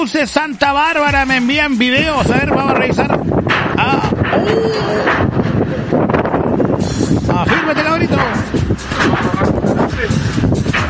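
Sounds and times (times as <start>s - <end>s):
speech: 0.0s - 5.8s
strong wind storm roaring and buffeting the microphone: 1.0s - 10.8s
man shouting: 3.9s - 5.2s.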